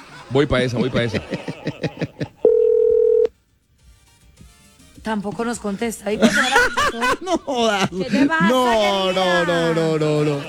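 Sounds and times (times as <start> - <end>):
laughter: 0.0 - 2.7, 6.1 - 10.4
speech: 0.3 - 2.0, 5.0 - 10.4
telephone number being dialed: 2.5 - 3.3.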